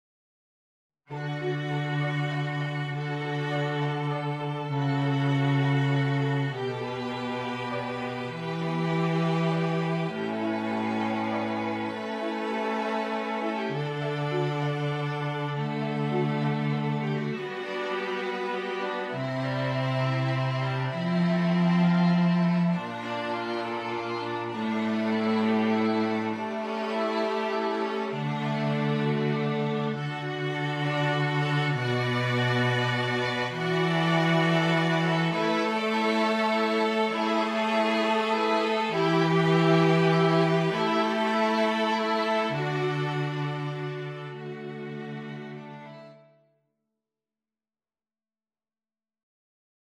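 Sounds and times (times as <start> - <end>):
string quintet playing: 1.1 - 46.4.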